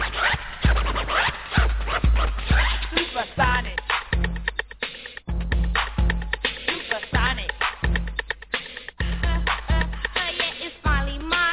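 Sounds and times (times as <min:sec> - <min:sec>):
steady rap beat: 0:00.0 - 0:11.5
turntable scratching cut to the beat in a rap track: 0:00.0 - 0:11.5
heavy low thumps: 0:01.6 - 0:04.7, 0:05.3 - 0:06.5, 0:07.1 - 0:08.4, 0:09.0 - 0:10.2.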